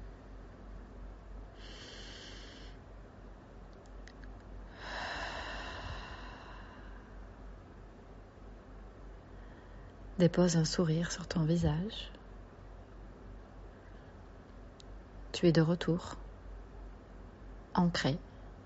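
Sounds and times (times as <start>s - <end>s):
soft steady hiss: 0.0s - 18.6s
deep breathing during a guided meditation: 1.5s - 2.8s, 4.7s - 7.3s, 9.2s - 10.1s
speech: 10.2s - 12.2s, 15.4s - 16.2s, 17.8s - 18.3s.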